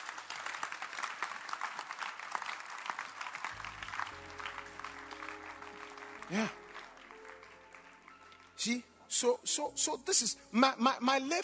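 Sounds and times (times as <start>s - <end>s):
audience clapping: 0.0s - 8.8s
speech: 6.3s - 6.6s, 8.6s - 11.4s.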